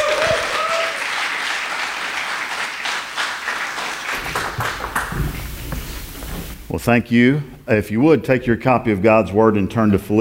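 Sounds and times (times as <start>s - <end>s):
audience applause: 0.0s - 6.4s
speech: 6.8s - 10.1s.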